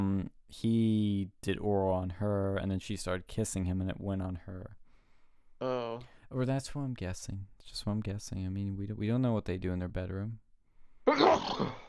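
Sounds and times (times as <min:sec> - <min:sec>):
speech: 0:00.5 - 0:04.8, 0:05.6 - 0:10.4, 0:11.1 - 0:11.8
sneeze: 0:11.1 - 0:11.8.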